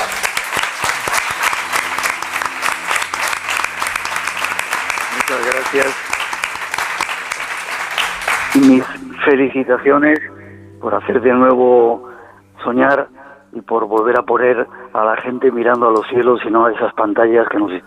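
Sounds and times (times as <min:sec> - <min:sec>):
audience applause: 0:00.0 - 0:09.2
speech: 0:05.7 - 0:06.1, 0:08.6 - 0:17.8.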